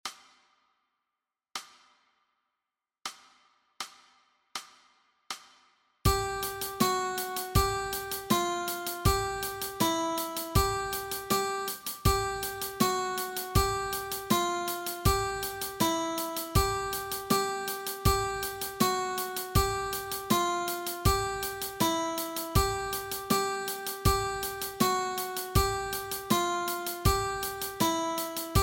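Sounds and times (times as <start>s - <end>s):
guitar exercise: 6.1s - 28.6s.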